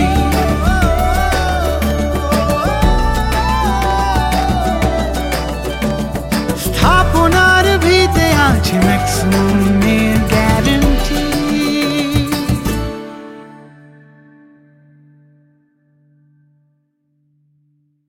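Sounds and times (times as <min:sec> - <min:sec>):
Bengali song: 0:00.0 - 0:14.4.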